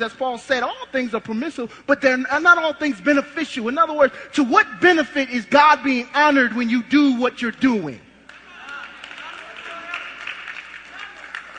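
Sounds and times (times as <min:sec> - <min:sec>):
speech: 0:00.0 - 0:08.0
light scattered clapping from a few audience members: 0:08.2 - 0:11.5.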